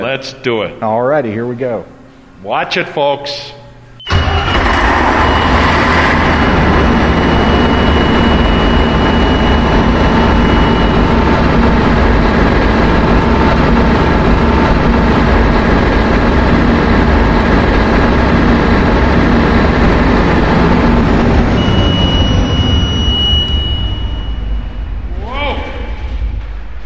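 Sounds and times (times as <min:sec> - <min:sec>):
high whine: 0:00.0 - 0:26.8
speech: 0:00.2 - 0:03.6
turbocharged engine cranking and running: 0:04.1 - 0:24.4.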